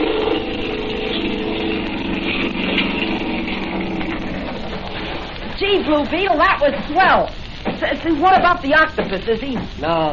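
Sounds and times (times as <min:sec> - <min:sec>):
boat motor starting: 0:00.0 - 0:05.4
speech: 0:05.7 - 0:10.1.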